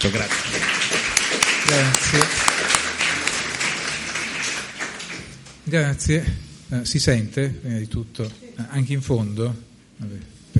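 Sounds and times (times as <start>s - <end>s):
speech: 0.0s - 0.8s, 1.6s - 2.6s, 5.7s - 10.5s
audience applause: 0.0s - 5.6s.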